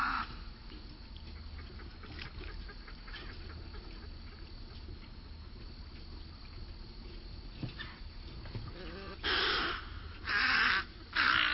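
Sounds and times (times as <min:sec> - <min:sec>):
snowy egret calling: 0:08.7 - 0:11.5.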